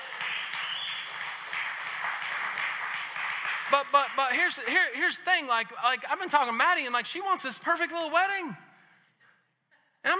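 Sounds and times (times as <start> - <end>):
audience cheering and clapping: 0.0 - 4.3
speech: 3.7 - 8.6.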